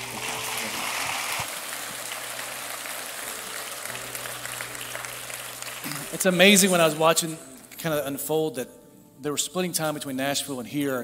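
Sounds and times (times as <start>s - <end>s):
crowd applauding: 0.0s - 7.0s
speech: 6.2s - 11.0s.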